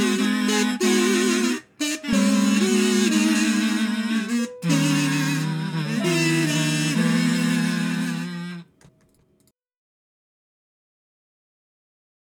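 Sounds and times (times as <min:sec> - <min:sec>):
kazoo: 0:00.0 - 0:08.8.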